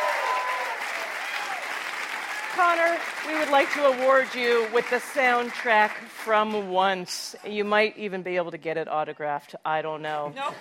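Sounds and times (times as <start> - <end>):
audience applause: 0.0 - 6.0
speech: 2.6 - 10.5.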